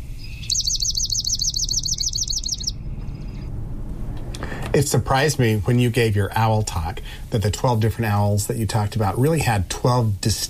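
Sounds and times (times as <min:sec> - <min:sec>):
swamp sparrow singing: 0:00.0 - 0:03.5
speech: 0:04.8 - 0:10.4.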